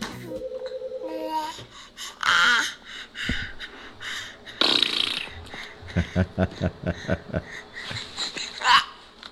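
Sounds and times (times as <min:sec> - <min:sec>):
baby babbling: 0:01.0 - 0:04.0
laughter: 0:03.3 - 0:09.1.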